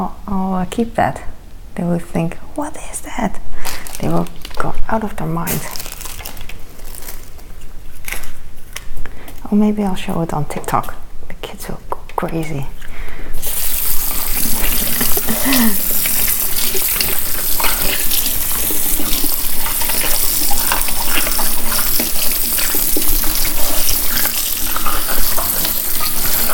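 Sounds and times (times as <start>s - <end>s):
speech: 0.0s - 5.9s, 9.5s - 12.8s, 15.4s - 15.9s
tap water running while washing bell pepper: 13.4s - 26.5s.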